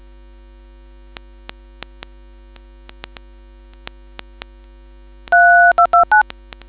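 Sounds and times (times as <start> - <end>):
DTMF tones: 5.3 - 6.3.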